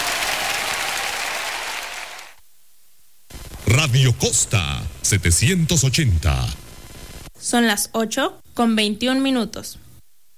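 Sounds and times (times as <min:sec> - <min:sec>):
audience applause: 0:00.0 - 0:02.4
speech: 0:03.8 - 0:06.7, 0:07.5 - 0:09.8.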